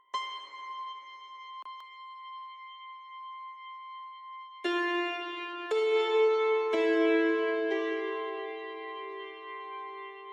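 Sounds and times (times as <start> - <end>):
angelic theme music: 4.6 - 10.3.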